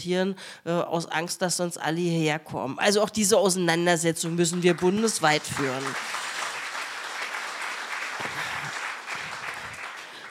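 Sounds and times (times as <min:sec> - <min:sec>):
speech: 0:00.0 - 0:06.3
audience applause: 0:04.5 - 0:10.2.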